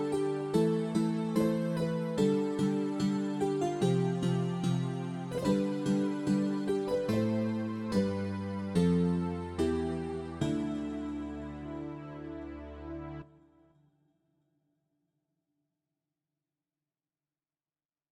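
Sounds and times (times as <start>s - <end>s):
generic RPG town music: 0.0s - 13.2s.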